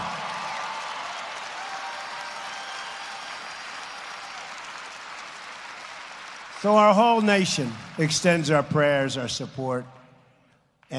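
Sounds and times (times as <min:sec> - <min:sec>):
audience applause: 0:00.0 - 0:09.9
speech: 0:06.6 - 0:10.0.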